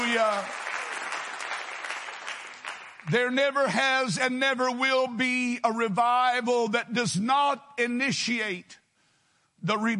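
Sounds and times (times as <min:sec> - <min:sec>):
audience clapping hands: 0:00.0 - 0:03.6
speech: 0:00.1 - 0:00.6, 0:03.0 - 0:08.8, 0:09.6 - 0:09.9.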